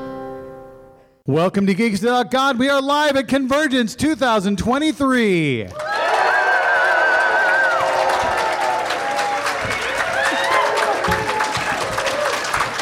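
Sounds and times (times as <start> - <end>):
speech: 1.3 - 5.9
live audience applause and cheering: 5.7 - 12.7.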